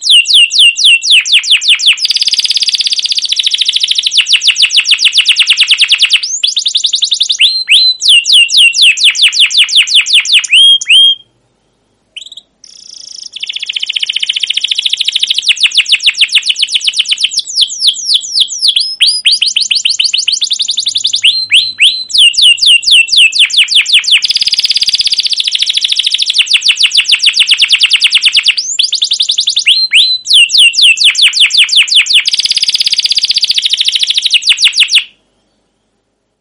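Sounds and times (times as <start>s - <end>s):
canary chirping and trilling: 0.0s - 11.3s, 12.1s - 35.9s.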